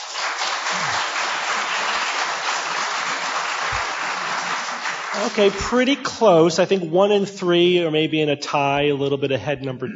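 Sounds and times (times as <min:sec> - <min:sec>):
audience applause: 0:00.0 - 0:05.9
speech: 0:05.2 - 0:09.9.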